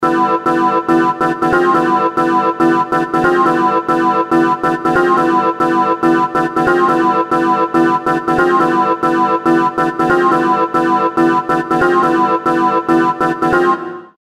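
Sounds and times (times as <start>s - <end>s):
fairground chords: 0.0s - 14.1s.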